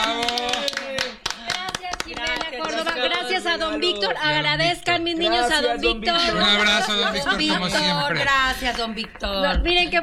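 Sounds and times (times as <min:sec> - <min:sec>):
people cheering: 0:00.0 - 0:01.8
applause for a guest at a children's event: 0:00.0 - 0:03.2
speech: 0:03.6 - 0:10.0
laughter: 0:06.1 - 0:08.8.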